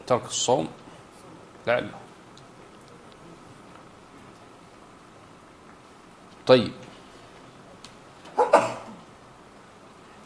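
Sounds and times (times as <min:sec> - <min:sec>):
speech: 0:00.1 - 0:00.8, 0:01.6 - 0:02.0, 0:06.5 - 0:06.9
person sneezing: 0:08.4 - 0:09.0.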